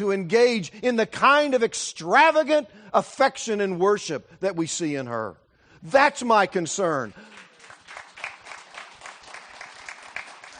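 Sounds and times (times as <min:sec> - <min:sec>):
speech: 0:00.0 - 0:07.4
audience applause in church: 0:07.2 - 0:10.5.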